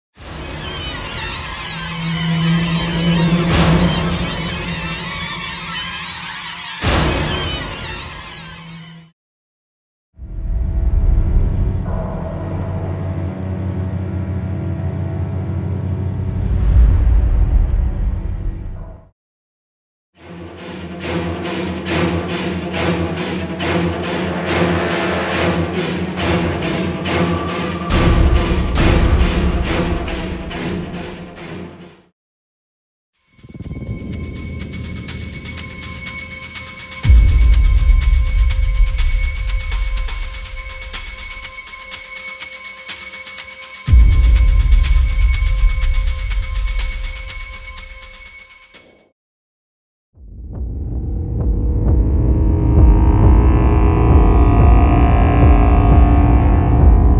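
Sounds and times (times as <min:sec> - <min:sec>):
paranormal horror combat music: 0:00.3 - 0:09.1, 0:10.2 - 0:19.0, 0:20.5 - 0:31.8, 0:33.3 - 0:48.8, 0:50.6 - 0:57.1.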